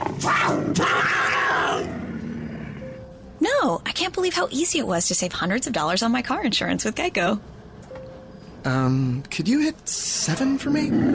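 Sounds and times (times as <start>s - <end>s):
puma growling: 0.0s - 2.8s, 10.3s - 11.1s
speech: 4.0s - 7.6s, 8.6s - 11.1s.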